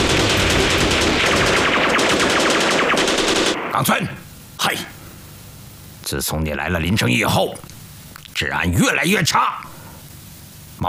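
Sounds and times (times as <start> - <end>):
automatic gunfire: 0.0 - 3.7
speech: 6.1 - 7.8, 8.4 - 9.8.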